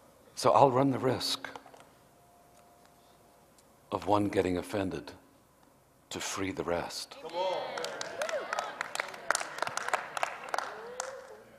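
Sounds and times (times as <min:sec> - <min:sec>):
speech: 0:00.4 - 0:01.6, 0:03.9 - 0:05.2, 0:06.1 - 0:07.6
audience clapping: 0:07.2 - 0:11.5.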